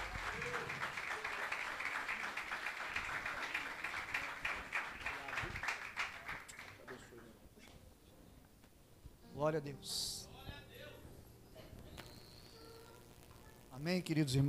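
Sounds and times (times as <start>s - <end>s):
audience applause: 0.0s - 7.2s
speech: 9.4s - 10.2s, 13.8s - 14.4s.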